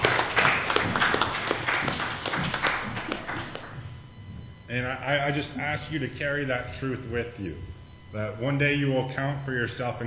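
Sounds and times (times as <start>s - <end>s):
audience applause: 0.0s - 3.8s
speech: 5.0s - 10.0s.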